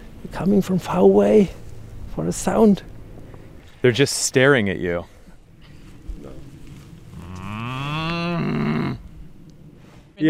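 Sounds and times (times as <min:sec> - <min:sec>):
speech: 0:00.3 - 0:01.6, 0:02.2 - 0:02.9, 0:03.8 - 0:05.1
cows on a German farm: 0:05.7 - 0:09.5.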